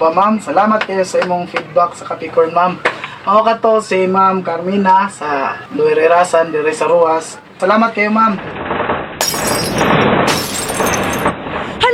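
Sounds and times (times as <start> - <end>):
speech: 0.0 - 8.6
household objects clattering during an earthquake: 8.4 - 11.8
breaking glass during an earthquake: 8.7 - 11.4.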